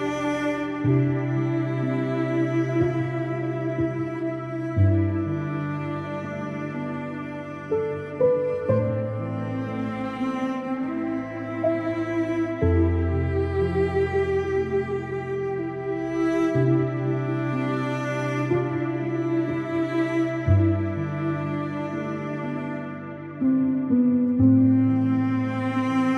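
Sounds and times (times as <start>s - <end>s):
sad instrumental piano piece: 0.0s - 26.1s.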